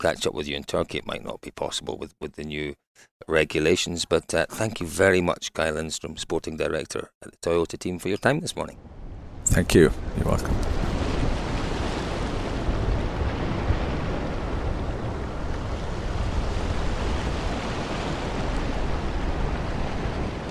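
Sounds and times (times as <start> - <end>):
speech: 0.0 - 10.9
wind at sea: 7.2 - 20.4
waves at sea: 9.4 - 20.4.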